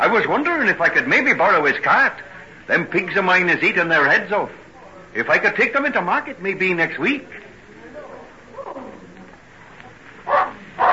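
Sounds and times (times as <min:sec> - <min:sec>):
murmuring sound: 0:00.0 - 0:10.9
speech: 0:00.1 - 0:04.6, 0:05.2 - 0:07.4
dog barking: 0:10.3 - 0:10.9.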